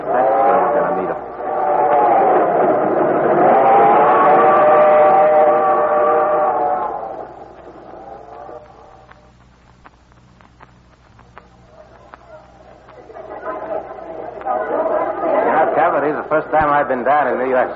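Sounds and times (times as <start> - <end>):
dense crowd chatter in a busy subway station: 0.0 - 9.3, 11.1 - 17.7
scattered clicks: 6.9 - 14.6
footsteps: 7.0 - 15.0
speech: 17.0 - 17.7.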